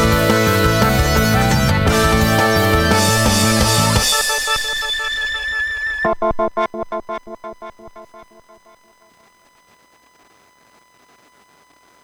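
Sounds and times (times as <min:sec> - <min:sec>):
ambient music: 0:00.0 - 0:09.0.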